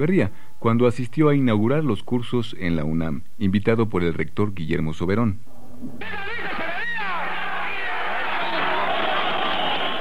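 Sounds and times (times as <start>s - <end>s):
speech: 0.0s - 6.5s
students booing: 6.0s - 9.8s
students shouting: 6.0s - 10.0s
students whistling: 6.0s - 10.0s.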